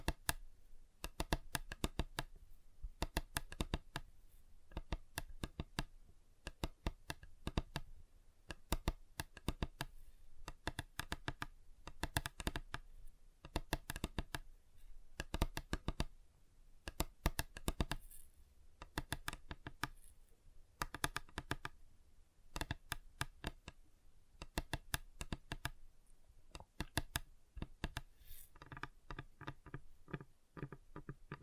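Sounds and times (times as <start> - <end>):
fingers tapping on a tabletop and other surfaces: 0.0 - 0.4, 1.0 - 2.4, 3.0 - 4.1, 4.7 - 7.9, 8.5 - 14.5, 15.2 - 16.2, 16.8 - 18.2, 18.8 - 20.1, 20.8 - 21.8, 22.5 - 25.8, 26.5 - 31.4.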